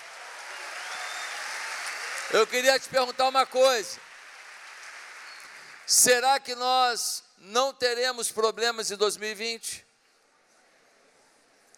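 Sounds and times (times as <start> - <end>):
audience applause: 0.0 - 6.2
speech: 2.3 - 4.1, 5.9 - 9.8.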